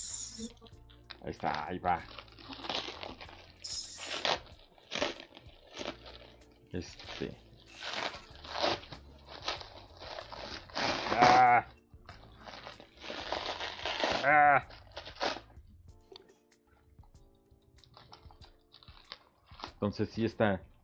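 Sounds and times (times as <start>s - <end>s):
speech: 0.4s - 2.2s, 6.7s - 7.4s, 19.8s - 20.7s
plastic shrink wrap torn open by hand: 1.1s - 15.5s, 17.8s - 19.9s.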